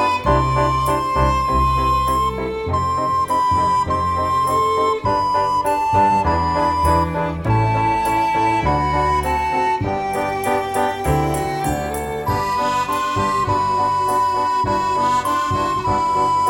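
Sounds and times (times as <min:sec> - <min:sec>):
flabiol playing: 0:00.0 - 0:16.4.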